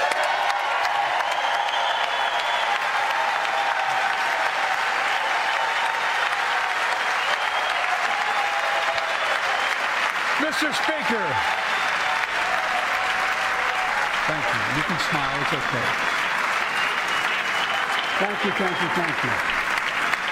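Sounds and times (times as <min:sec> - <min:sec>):
large audience applause: 0:00.0 - 0:20.2
speech: 0:10.6 - 0:11.6, 0:14.3 - 0:16.2, 0:18.2 - 0:19.6.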